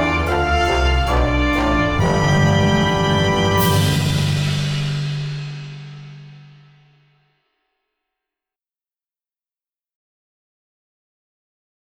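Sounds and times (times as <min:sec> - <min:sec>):
accompaniment backing track music: 0:00.0 - 0:06.1.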